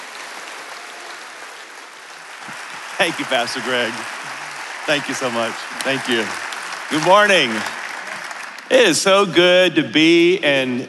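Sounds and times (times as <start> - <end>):
standing church congregation applauding a guest pastor: 0.0 - 10.4
speech: 3.0 - 4.2, 4.8 - 7.8, 8.7 - 10.8.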